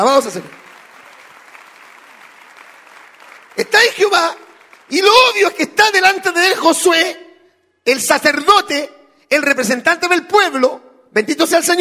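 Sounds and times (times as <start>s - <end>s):
speech: 0.0s - 0.6s, 3.7s - 7.2s, 7.8s - 11.7s
audience applause: 0.0s - 5.4s.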